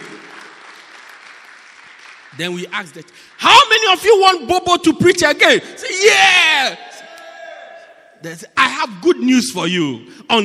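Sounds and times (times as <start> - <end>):
audience clapping: 0.0 - 4.2
speech: 2.3 - 6.9, 8.2 - 10.4.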